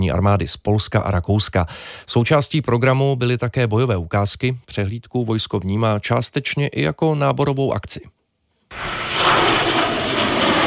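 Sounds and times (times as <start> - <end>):
speech: 0.0 - 8.2
JAS-39 Gripen fighter jets flying over: 8.7 - 10.6.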